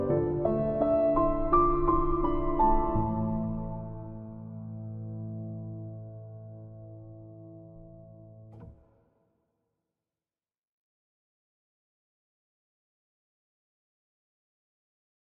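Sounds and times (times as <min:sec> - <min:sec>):
piano karaoke cover: 0:00.0 - 0:04.2.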